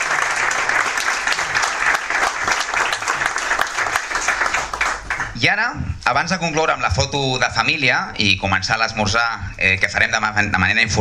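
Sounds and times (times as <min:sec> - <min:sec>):
audience applause: 0:00.0 - 0:05.4
speech: 0:05.6 - 0:10.9.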